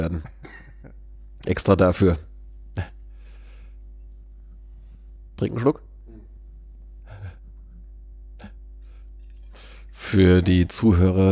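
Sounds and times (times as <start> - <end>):
speech: 0.0 - 0.4, 1.5 - 2.9, 5.4 - 5.9, 10.1 - 11.2
person coughing: 0.3 - 0.9.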